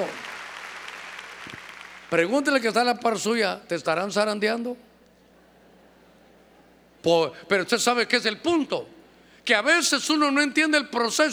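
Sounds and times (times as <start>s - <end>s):
audience applause: 0.0s - 2.1s
speech: 2.1s - 4.9s, 7.0s - 11.3s.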